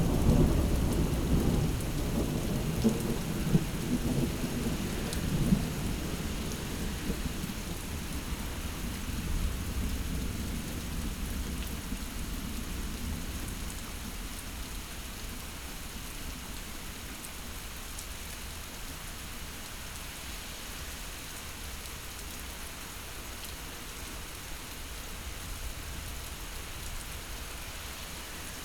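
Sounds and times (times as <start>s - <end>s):
thunderstorm: 0.0s - 14.0s.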